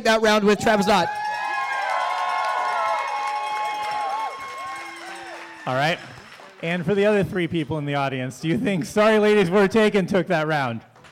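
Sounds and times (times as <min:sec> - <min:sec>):
speech: 0:00.0 - 0:01.2, 0:05.6 - 0:10.9
audience cheering and whooping to vote for a team in a live competition: 0:00.4 - 0:06.5.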